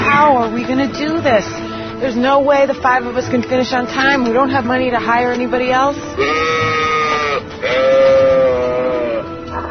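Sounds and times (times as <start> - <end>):
speech: 0.2 - 6.8
alpaca vocalizing: 6.1 - 9.7.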